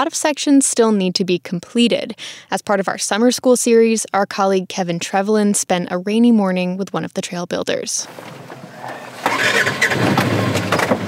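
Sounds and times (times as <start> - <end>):
speech: 0.0 - 10.6
off-road vehicle engine: 8.1 - 11.0.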